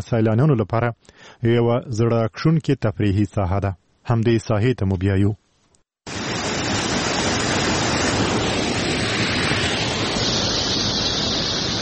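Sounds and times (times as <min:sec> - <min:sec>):
speech: 0:00.0 - 0:05.4
spring water rushing at Mazar Baba spring in Chora district, Uruzgan: 0:06.1 - 0:11.8.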